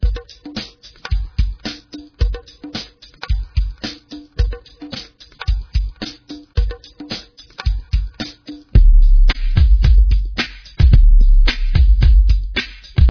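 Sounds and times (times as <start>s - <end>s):
music beat: 0.0s - 13.0s.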